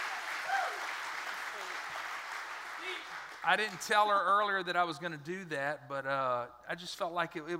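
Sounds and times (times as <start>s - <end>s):
audience applause: 0.0s - 4.3s
speech: 3.4s - 7.5s.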